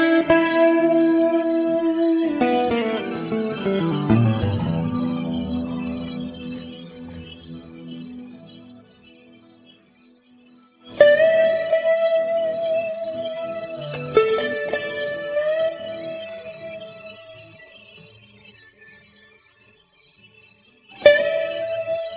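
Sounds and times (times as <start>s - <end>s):
dry solo guitar: 0.0s - 9.0s, 10.8s - 17.8s, 21.0s - 22.1s.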